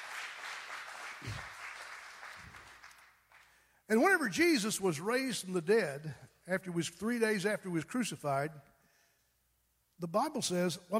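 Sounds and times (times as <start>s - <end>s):
applause: 0.0s - 3.7s
speech: 3.9s - 8.7s, 10.0s - 10.9s.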